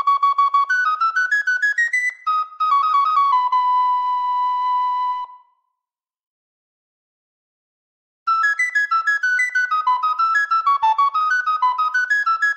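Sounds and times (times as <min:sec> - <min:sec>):
virtual English recorder flute VST plugin: 0:00.0 - 0:05.7, 0:08.3 - 0:12.5.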